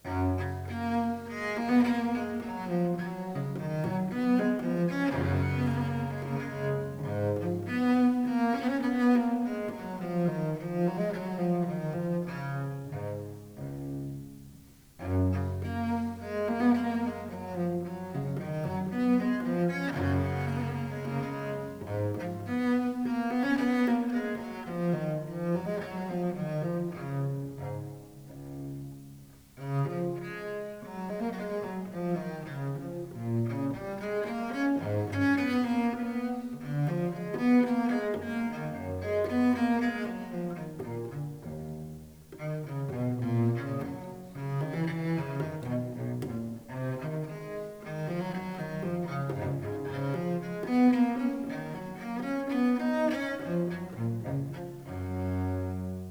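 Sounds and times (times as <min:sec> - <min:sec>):
cello minuet: 0:00.0 - 0:56.0.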